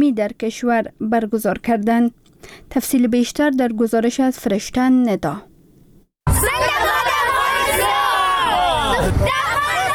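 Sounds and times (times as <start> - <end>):
speech: 0.1 - 5.5
Afghan children chanting slogans at an Independence Day celebration in Kabul: 6.4 - 9.9.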